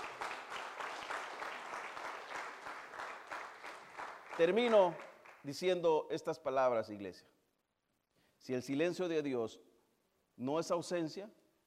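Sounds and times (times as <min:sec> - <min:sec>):
audience applause: 0:00.0 - 0:05.5
speech: 0:04.4 - 0:07.3, 0:08.4 - 0:09.7, 0:10.4 - 0:11.4.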